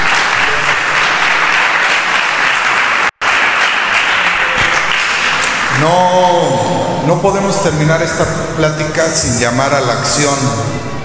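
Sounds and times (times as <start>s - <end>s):
audience applause: 0.0s - 5.9s
speech: 5.8s - 10.9s.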